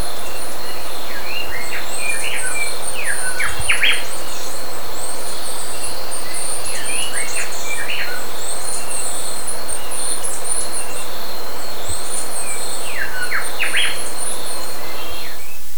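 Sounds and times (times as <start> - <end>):
bird chirping: 0.0 - 15.7
insect drone: 0.0 - 15.7.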